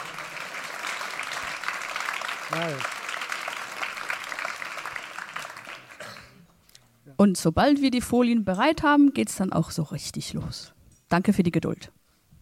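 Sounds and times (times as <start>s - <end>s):
audience applause: 0.0s - 6.0s
speech: 2.5s - 3.0s, 7.2s - 12.0s.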